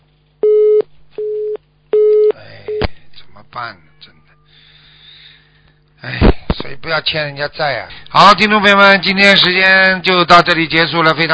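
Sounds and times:
faint constant low hum: 0.0s - 11.3s
telephone busy tone after a dropped call: 0.4s - 2.3s
speech: 3.4s - 4.2s, 6.0s - 11.3s.

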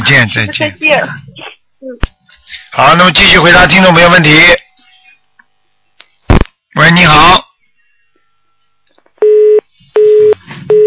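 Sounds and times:
speech: 0.1s - 1.2s, 2.8s - 4.6s, 6.8s - 7.4s
phone busy tone after call dropped: 9.2s - 10.8s.

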